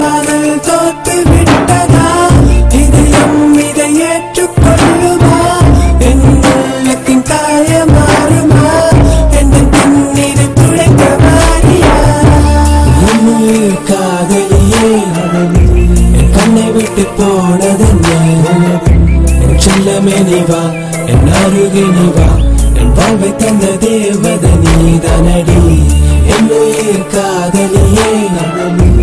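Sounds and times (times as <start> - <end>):
Tamil love song: 0.0 - 29.0.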